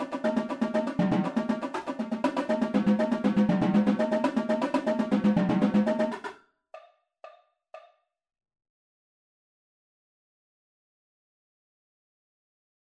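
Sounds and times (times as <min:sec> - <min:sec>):
tenor drum double beat: 0:00.0 - 0:06.9.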